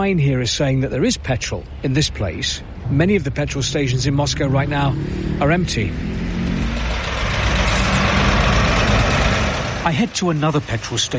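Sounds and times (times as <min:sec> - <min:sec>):
speech: 0:00.0 - 0:06.6, 0:09.8 - 0:11.1
queue of cars idling at petrol station: 0:02.2 - 0:11.1.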